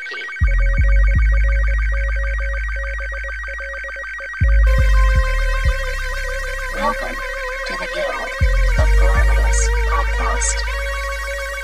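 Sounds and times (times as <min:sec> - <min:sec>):
low thumping pulses: 0:00.0 - 0:11.6
incoming transmission electronic alert tone: 0:06.7 - 0:11.6
speech: 0:10.4 - 0:10.8.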